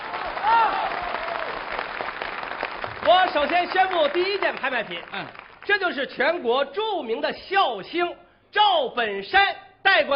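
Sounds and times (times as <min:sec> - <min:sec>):
audience applause: 0:00.0 - 0:05.8
speech: 0:03.1 - 0:10.1.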